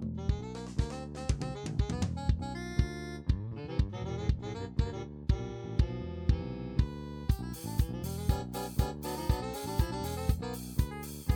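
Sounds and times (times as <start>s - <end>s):
jazz saxophone: 0.2s - 11.3s.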